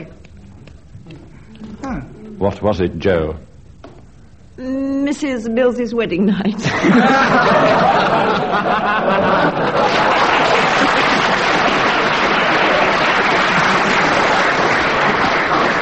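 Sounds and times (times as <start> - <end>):
speech: 1.9 - 3.5, 4.6 - 10.2
voices and laughter: 6.1 - 10.3
studio audience applause: 9.1 - 15.7.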